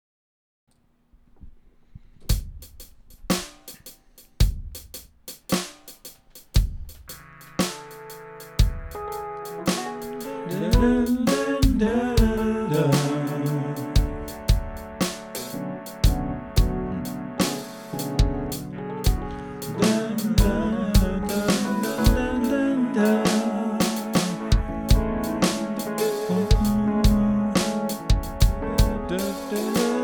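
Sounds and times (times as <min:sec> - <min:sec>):
band practicing: 0:04.8 - 0:30.0.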